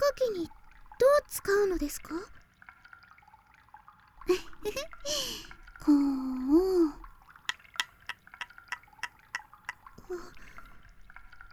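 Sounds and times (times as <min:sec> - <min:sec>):
speech: 0:01.3 - 0:02.4, 0:04.3 - 0:07.0, 0:10.1 - 0:10.4
soft smeary squelching of oiled cotton swab: 0:04.4 - 0:11.5
cotton swab worked in baby oil making wet clicks: 0:07.5 - 0:10.6.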